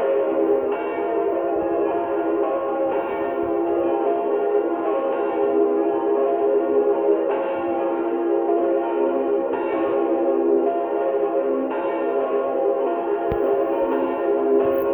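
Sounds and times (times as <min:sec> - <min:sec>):
church bells ringing in Eriskirch Mariabrunn: 0:00.0 - 0:14.9.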